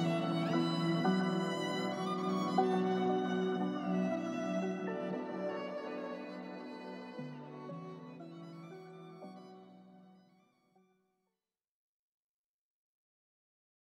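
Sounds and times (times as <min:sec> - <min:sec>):
violin at 128 BPM: 0:00.0 - 0:10.6.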